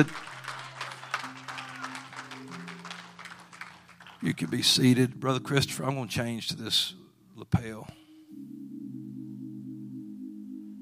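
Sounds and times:
speech: 0.0s - 0.3s, 4.2s - 8.5s
audience clapping hands in praise: 0.0s - 5.0s
low steady organ-like tone: 0.0s - 10.8s.

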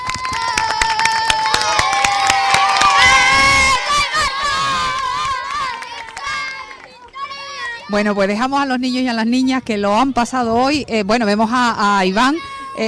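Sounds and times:
audience applause: 0.0s - 7.2s
children cheering: 0.0s - 8.0s
speech: 7.9s - 12.8s.

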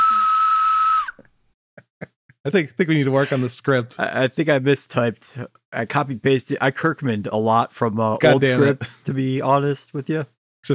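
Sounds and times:
train whistle sound effect: 0.0s - 1.2s
speech: 2.4s - 10.7s.

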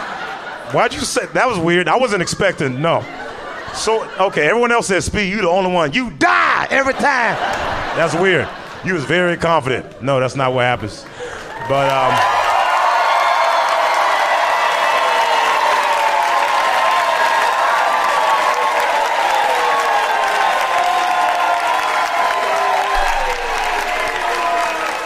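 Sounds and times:
audience clapping and cheering: 0.0s - 1.4s, 6.4s - 8.8s, 9.8s - 25.0s
laughter: 0.0s - 5.8s, 6.4s - 10.2s, 20.2s - 25.0s
speech: 0.7s - 12.4s.

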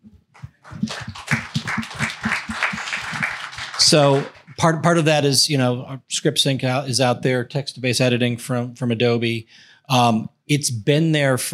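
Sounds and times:
round of applause: 0.4s - 4.6s
speech: 3.9s - 11.5s.

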